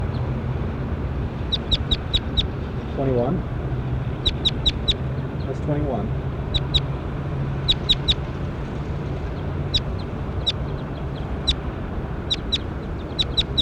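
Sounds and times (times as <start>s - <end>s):
low rumble and hiss: 0.0s - 13.5s
bird chirping: 1.4s - 3.0s, 4.2s - 5.6s, 6.4s - 6.9s, 7.6s - 13.5s
speech: 3.0s - 3.6s, 5.6s - 6.3s.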